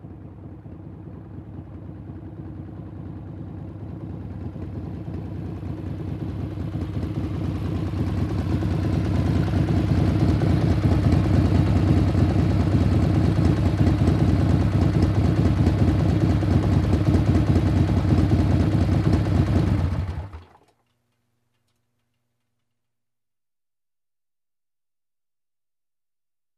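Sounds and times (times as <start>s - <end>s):
motorcycle approaching and turning off: 0.0s - 20.4s.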